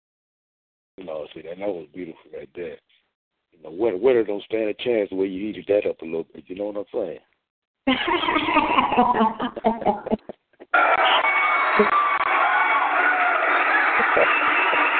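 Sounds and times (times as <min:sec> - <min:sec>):
speech: 0:01.0 - 0:10.2, 0:11.8 - 0:12.0
laughter: 0:07.9 - 0:14.9
crowd cheering: 0:10.6 - 0:14.9.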